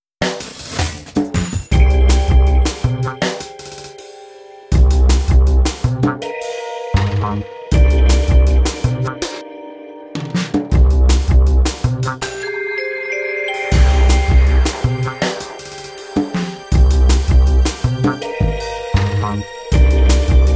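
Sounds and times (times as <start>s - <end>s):
techno music: 1.0s - 12.6s, 13.6s - 20.5s.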